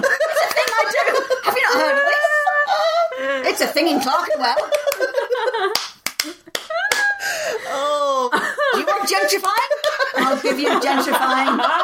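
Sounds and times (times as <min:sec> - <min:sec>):
laughter: 0:00.0 - 0:11.8
hand clapping: 0:00.4 - 0:01.0, 0:04.7 - 0:07.2, 0:09.1 - 0:10.3
speech: 0:03.6 - 0:05.8, 0:09.0 - 0:11.8.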